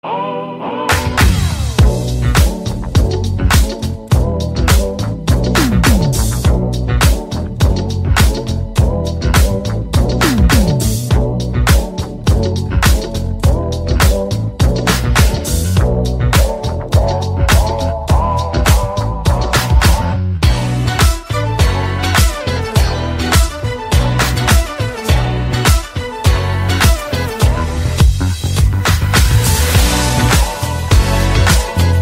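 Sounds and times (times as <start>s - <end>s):
instrumental music: 0.8s - 31.9s.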